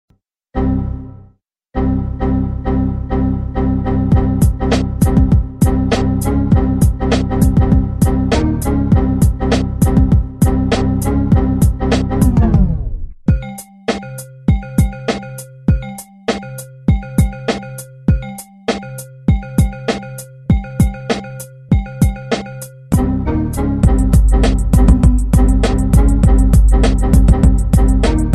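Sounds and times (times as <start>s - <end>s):
music: 0.5s - 28.3s.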